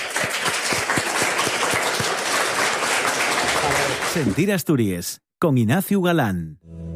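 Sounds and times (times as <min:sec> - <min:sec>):
audience applause: 0:00.0 - 0:04.6
rhythmic clapping: 0:00.0 - 0:04.6
speech: 0:04.1 - 0:06.8.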